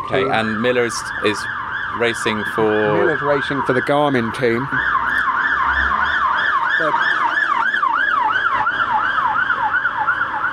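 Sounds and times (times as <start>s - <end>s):
speech: 0.1s - 5.0s, 6.8s - 7.1s
police siren passing by: 0.1s - 10.5s.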